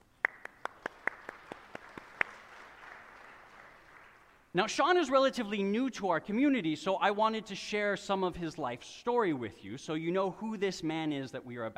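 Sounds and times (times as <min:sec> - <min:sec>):
audience applause: 0:00.2 - 0:04.4
speech: 0:04.6 - 0:11.7.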